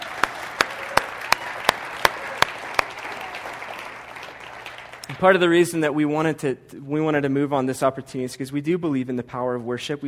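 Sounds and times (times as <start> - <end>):
church congregation clapping: 0.0 - 5.7
speech: 5.2 - 10.0.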